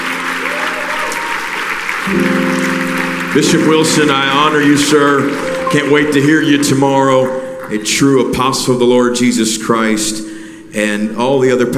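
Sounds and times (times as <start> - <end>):
audience clapping: 0.0 - 8.2
speech: 2.1 - 2.4, 3.4 - 11.7.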